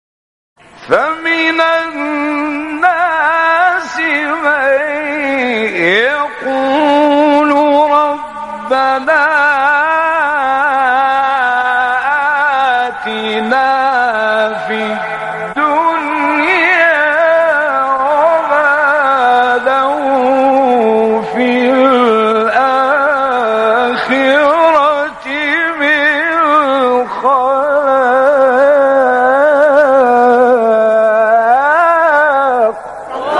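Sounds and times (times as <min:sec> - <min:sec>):
person reciting a Quran verse: 0:00.7 - 0:33.3.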